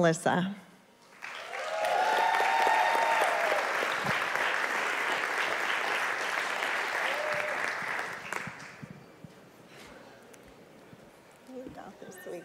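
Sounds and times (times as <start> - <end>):
speech: 0.0 - 0.6
audience applause welcoming a speaker: 1.1 - 8.9.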